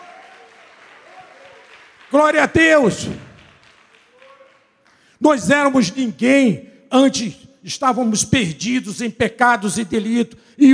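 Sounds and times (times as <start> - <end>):
audience applauding: 0.0 - 5.1
speech: 2.1 - 3.2, 5.2 - 10.7.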